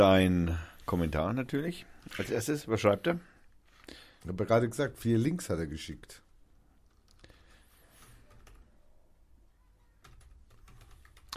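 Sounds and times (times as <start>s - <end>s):
speech: 0.0s - 3.3s, 3.9s - 6.2s
password typed on a computer keyboard: 8.0s - 8.8s, 10.0s - 11.3s.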